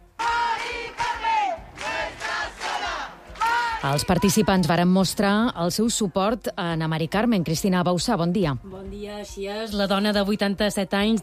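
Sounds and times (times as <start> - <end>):
protest crowd chanting at a rally: 0.0 - 4.7
speech: 3.8 - 11.2.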